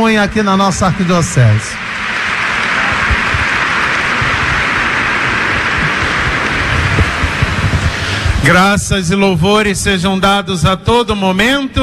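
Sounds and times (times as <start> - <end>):
speech: 0.0 - 1.9, 8.4 - 11.8
applause: 0.8 - 8.3.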